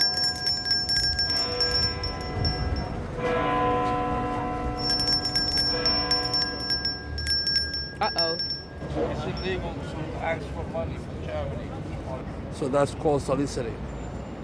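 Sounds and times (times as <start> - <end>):
tolling bell: 0.0 - 10.0
speech: 9.5 - 13.9.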